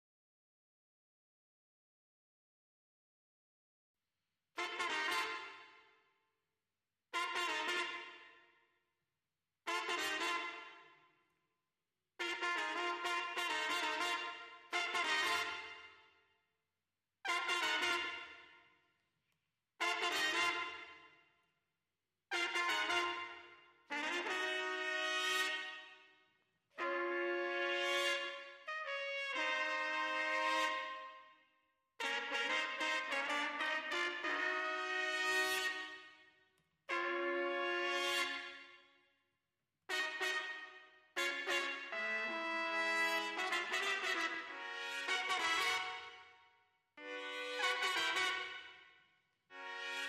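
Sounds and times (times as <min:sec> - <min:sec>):
clean trumpet: 0:04.6 - 0:06.0, 0:07.1 - 0:08.6, 0:09.6 - 0:11.1, 0:12.2 - 0:16.2, 0:17.2 - 0:18.8, 0:19.8 - 0:21.3, 0:22.3 - 0:39.2, 0:39.9 - 0:50.0.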